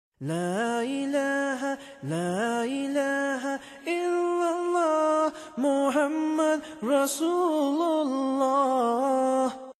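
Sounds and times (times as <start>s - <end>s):
Islamic chant: 0.2s - 9.7s.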